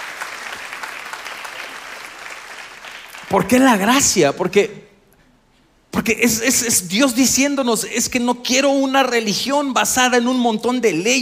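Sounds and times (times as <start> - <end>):
audience applause: 0.0 - 3.4
speech: 3.3 - 4.8, 6.0 - 11.2.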